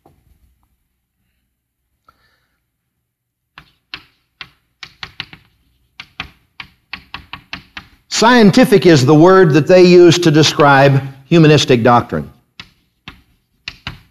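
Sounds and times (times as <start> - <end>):
writing on a board: 3.5 - 8.0, 12.6 - 14.0
speech: 8.2 - 12.3.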